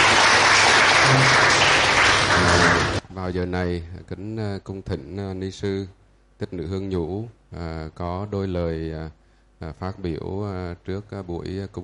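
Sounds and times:
large audience applause in a hall: 0.0s - 3.0s
speech: 3.2s - 11.8s.

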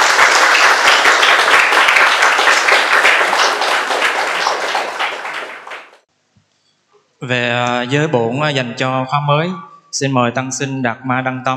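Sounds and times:
crowd applause: 0.0s - 6.0s
speech: 7.2s - 11.5s.

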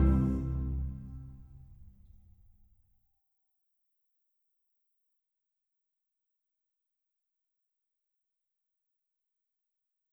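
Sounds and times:
orchestra playing a minuet in C major: 0.0s - 1.6s.

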